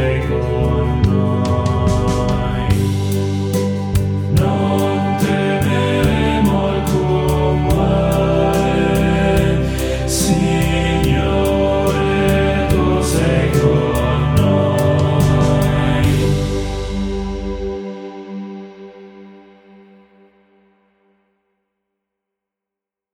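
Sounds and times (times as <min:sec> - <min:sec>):
people singing a hymn: 0:00.0 - 0:18.0.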